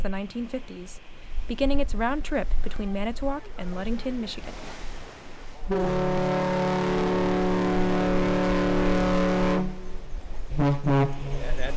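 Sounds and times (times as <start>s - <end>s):
speech: 0.0s - 4.9s, 5.7s - 7.1s, 10.6s - 11.2s
Badger car ferry's deep horn blasts: 5.7s - 11.7s.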